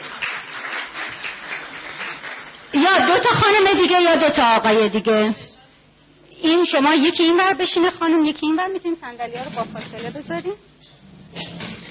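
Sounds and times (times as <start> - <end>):
crowd applause: 0.0 - 2.7
speech: 2.7 - 5.4, 6.4 - 11.5.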